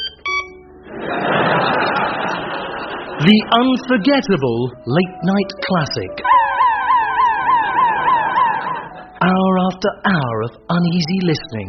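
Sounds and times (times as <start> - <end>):
off-licence shop door buzzer: 0.0 - 0.6
laughter: 0.9 - 4.3, 7.0 - 9.3
speech: 3.2 - 6.3, 9.2 - 11.6.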